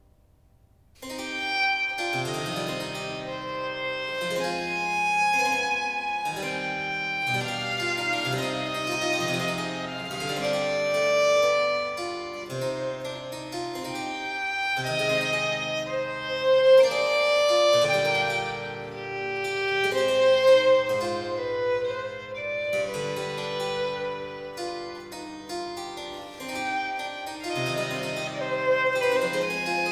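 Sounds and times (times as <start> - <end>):
slow sarabande in D minor: 1.0 - 29.8.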